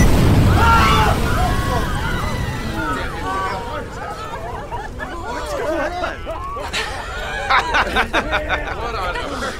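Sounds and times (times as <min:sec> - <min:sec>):
bomb blast: 0:00.0 - 0:03.7
excited crowd voices chattering and calling out: 0:00.5 - 0:09.5
laughter: 0:02.6 - 0:09.5.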